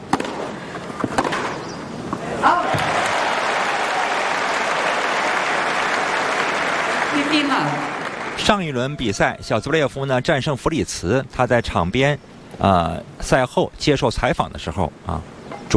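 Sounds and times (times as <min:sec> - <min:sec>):
sharp tennis ball or racket hits: 0:00.1 - 0:00.4, 0:01.0 - 0:01.6
speech: 0:02.4 - 0:02.9, 0:07.3 - 0:15.7
tennis stadium crowd applause and cheering: 0:02.4 - 0:09.3.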